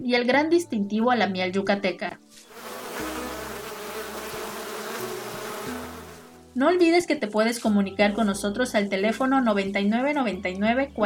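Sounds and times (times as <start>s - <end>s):
speech: 0.0s - 2.5s, 6.6s - 11.0s
honey bees buzzing: 2.5s - 6.4s.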